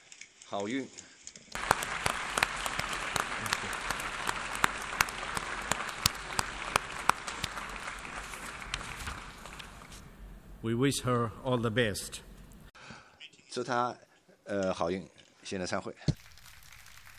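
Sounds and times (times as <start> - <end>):
speech: 0.5 - 1.0, 10.6 - 12.3, 13.6 - 16.2
large conference audience applauding: 1.6 - 10.1, 16.2 - 17.1.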